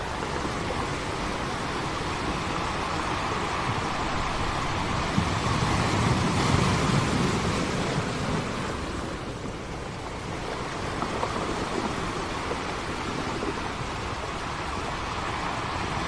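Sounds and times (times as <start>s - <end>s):
sea wind blowing: 0.0s - 16.0s.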